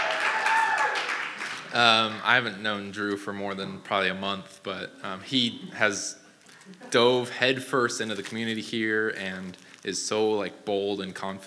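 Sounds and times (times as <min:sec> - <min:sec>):
audience clapping: 0:00.0 - 0:02.4
speech: 0:01.7 - 0:11.4.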